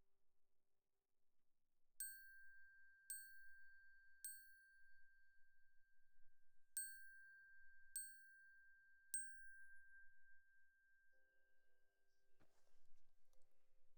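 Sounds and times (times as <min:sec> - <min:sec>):
glockenspiel: 0:02.0 - 0:05.7, 0:06.8 - 0:11.5.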